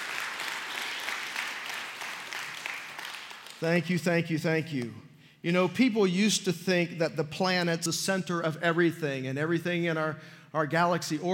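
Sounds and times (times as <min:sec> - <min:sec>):
audience applause: 0:00.0 - 0:03.6
speech: 0:03.6 - 0:11.3.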